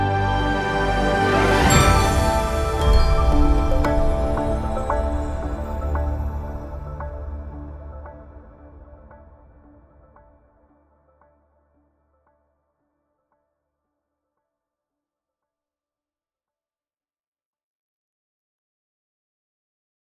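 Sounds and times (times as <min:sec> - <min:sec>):
musical stinger: 0:00.2 - 0:08.0.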